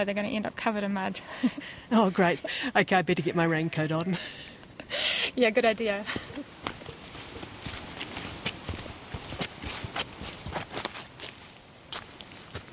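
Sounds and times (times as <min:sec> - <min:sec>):
speech: 0:00.0 - 0:06.5
hiss: 0:00.0 - 0:12.7
footsteps walking through wet bush: 0:06.1 - 0:12.7.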